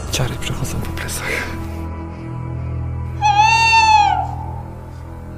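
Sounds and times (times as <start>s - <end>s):
speech: 0.2s - 1.6s
tawny owl hooting: 3.1s - 5.1s.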